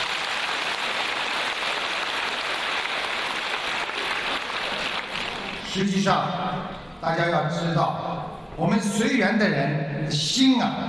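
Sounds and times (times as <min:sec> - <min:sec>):
audience applause: 0:00.0 - 0:05.8
speech: 0:05.8 - 0:10.8.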